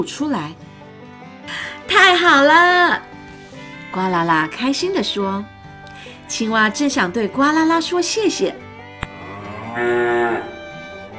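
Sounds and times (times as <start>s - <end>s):
speech: 0.0s - 0.7s, 1.5s - 3.2s, 3.9s - 5.6s, 6.3s - 8.6s, 9.8s - 10.5s
bull bellowing: 3.1s - 11.1s
sharp click: 9.0s - 9.4s.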